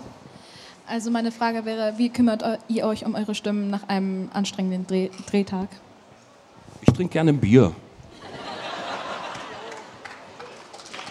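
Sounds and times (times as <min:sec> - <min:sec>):
speech: 0:00.9 - 0:05.9, 0:06.9 - 0:07.8
laughter: 0:08.1 - 0:10.6
audience applause: 0:08.9 - 0:11.0.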